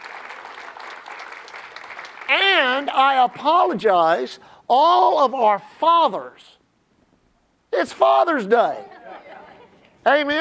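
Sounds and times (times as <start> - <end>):
audience hand clapping applause: 0.0 - 3.9
speech: 2.3 - 6.6, 7.8 - 9.2, 10.0 - 10.3
laughter: 8.7 - 10.0.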